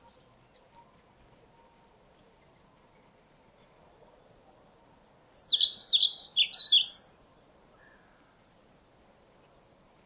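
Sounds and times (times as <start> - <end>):
pied flycatcher song: 5.3 - 7.2.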